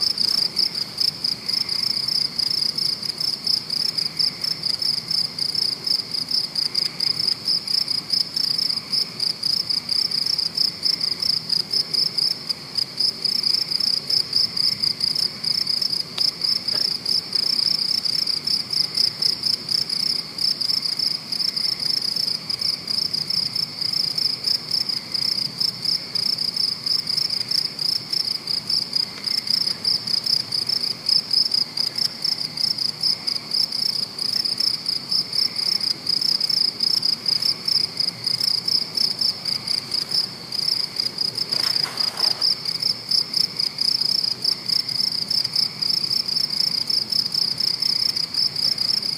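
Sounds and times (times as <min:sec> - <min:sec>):
crickets chirping: 0:00.0 - 0:49.1.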